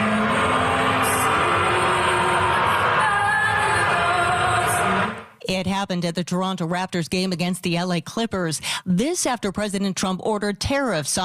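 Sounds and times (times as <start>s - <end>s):
arena crowd booing: 0.0s - 5.3s
speech: 5.6s - 11.2s.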